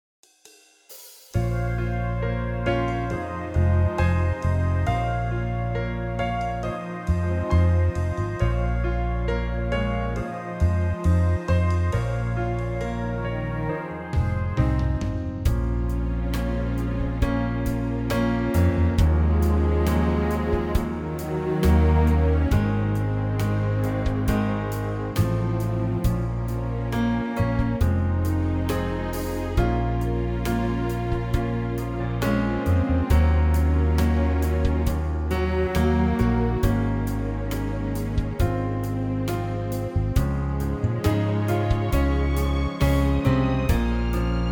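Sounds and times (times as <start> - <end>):
backing track in B-flat minor for male vocals: 0.9 - 44.5.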